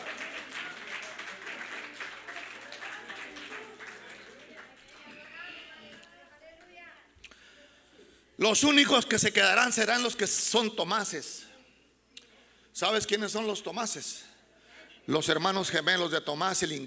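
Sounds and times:
loud applause: 0:00.0 - 0:05.7
speech: 0:08.4 - 0:11.4, 0:12.8 - 0:14.3, 0:15.1 - 0:16.8.

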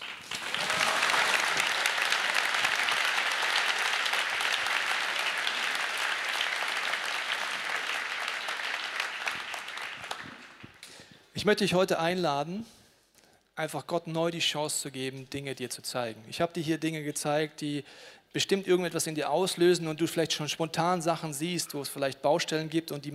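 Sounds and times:
audience applause: 0:00.0 - 0:10.9
speech: 0:11.4 - 0:12.8, 0:13.6 - 0:23.1.

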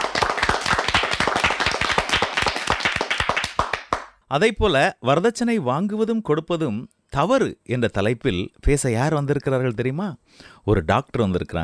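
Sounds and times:
audience clapping in welcome: 0:00.0 - 0:04.2
speech: 0:04.3 - 0:11.6.

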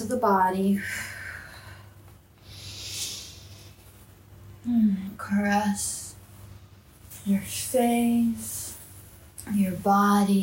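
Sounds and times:
speech: 0:00.1 - 0:01.2, 0:04.6 - 0:06.0, 0:07.2 - 0:08.7, 0:09.5 - 0:10.4
person breathing deeply during a guided energy-clearing exercise: 0:00.8 - 0:03.8.

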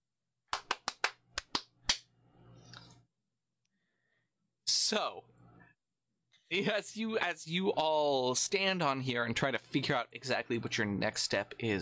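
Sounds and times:
sharp hand claps: 0:00.5 - 0:02.1
speech: 0:04.9 - 0:05.4, 0:06.5 - 0:11.7.

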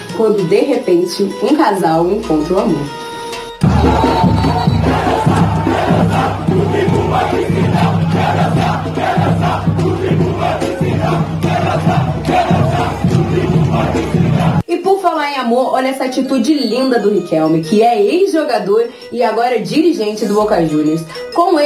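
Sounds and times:
speech: 0:00.2 - 0:03.1, 0:14.0 - 0:21.6
football fans cheering and chanting in celebration after a goal in stadium: 0:03.6 - 0:14.6.

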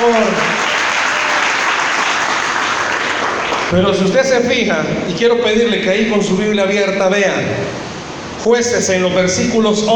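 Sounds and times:
applause: 0:00.0 - 0:03.7
speech: 0:03.7 - 0:07.8, 0:08.4 - 0:09.9.

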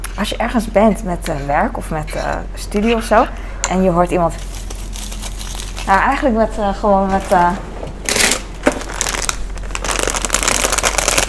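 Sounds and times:
speech: 0:00.2 - 0:04.6, 0:05.9 - 0:07.8
foil wrapper of chocolate praline eggs crinkling: 0:04.4 - 0:06.2, 0:08.0 - 0:11.2.

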